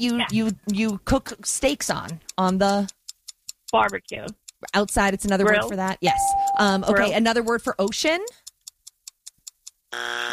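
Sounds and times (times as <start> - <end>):
speech: 0.0 - 3.0, 3.7 - 8.4, 9.9 - 10.3
faint ticks of a game timer: 0.0 - 6.0, 7.2 - 9.9
game show buzzer ending a timed word-guessing round: 9.9 - 10.3.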